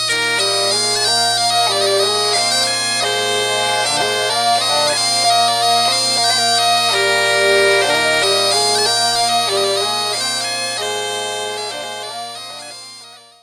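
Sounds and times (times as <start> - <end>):
traditional waltz music: 0.1 - 13.3.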